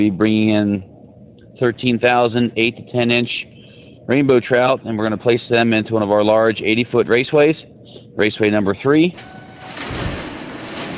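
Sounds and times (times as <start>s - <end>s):
speech: 0.0s - 0.9s, 1.6s - 3.5s, 4.1s - 9.9s
huge overhead door rattling open: 9.2s - 10.9s.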